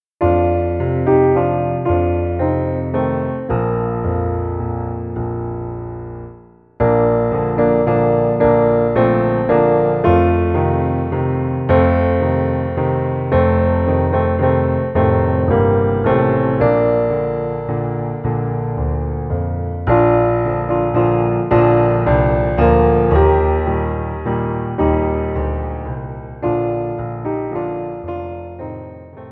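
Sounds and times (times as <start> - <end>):
instrumental music: 0.2 - 29.2.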